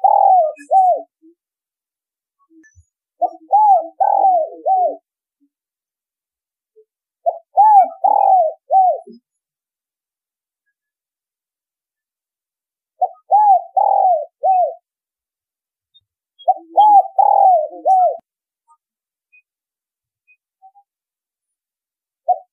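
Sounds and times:
spotted dove cooing: 0.0 - 1.2, 3.2 - 5.1, 7.2 - 9.2, 13.0 - 14.8, 16.4 - 18.2, 22.2 - 22.5.

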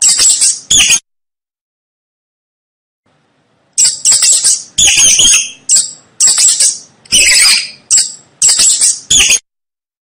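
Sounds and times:
mouse squeaking: 0.0 - 1.0, 3.8 - 9.4.

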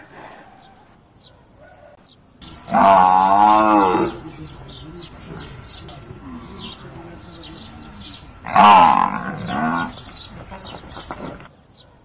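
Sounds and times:
buffalo calf calling: 2.4 - 10.6.

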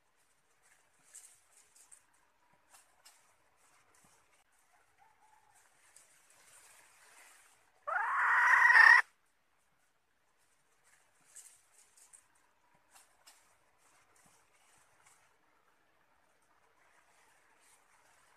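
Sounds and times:
red junglefowl hen harsh call: 7.9 - 9.0.

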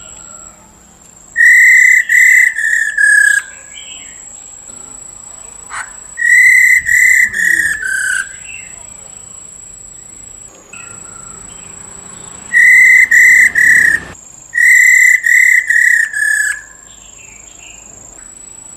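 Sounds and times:
Black-throated laughingthrush whistling: 1.4 - 3.7, 5.7 - 8.8, 10.0 - 16.7.

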